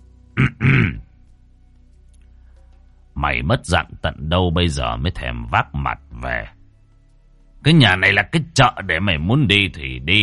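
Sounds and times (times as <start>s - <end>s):
person coughing: 0.4s - 1.0s
speech: 3.2s - 6.6s, 7.6s - 10.2s.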